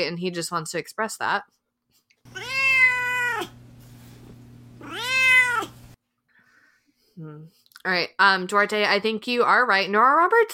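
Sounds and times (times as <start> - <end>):
speech: 0.0 - 1.6, 7.2 - 10.5
cat meowing: 2.3 - 3.6, 4.8 - 6.0.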